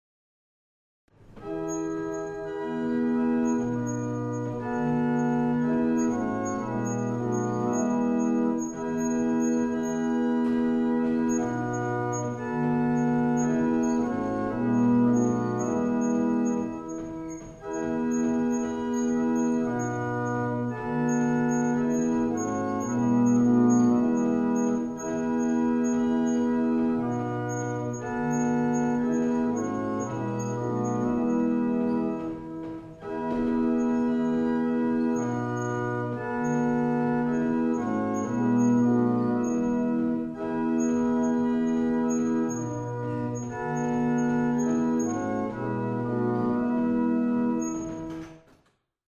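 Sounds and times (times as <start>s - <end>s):
barrel organs playing a single chant: 1.4s - 48.4s.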